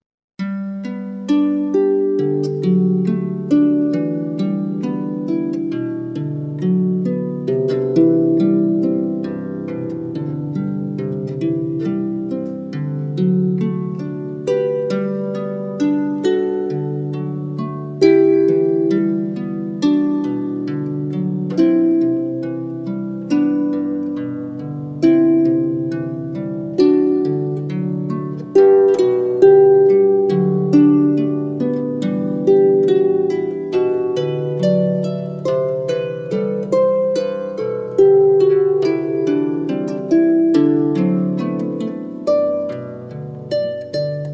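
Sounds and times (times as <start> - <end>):
harp playing a baroque canon: 0.4 - 44.3.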